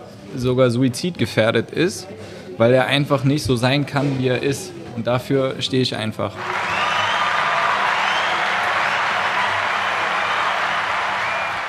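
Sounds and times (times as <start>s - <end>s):
speech: 0.3s - 6.7s
sustained applause from a crowd: 6.4s - 11.6s.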